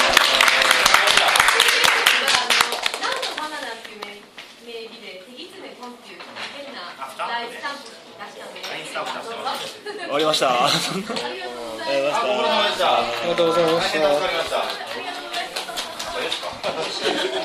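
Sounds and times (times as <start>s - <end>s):
audience applause: 0.0s - 3.6s, 12.8s - 17.4s
speech: 10.2s - 14.9s, 16.7s - 17.4s
laughter: 10.6s - 11.4s, 15.5s - 17.4s.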